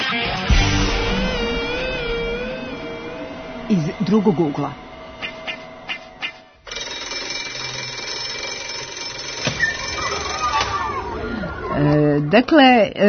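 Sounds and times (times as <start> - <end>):
school bell ringing at the Ninth Gymnasium: 0.8 - 12.5
speech: 3.7 - 4.8, 11.8 - 13.0.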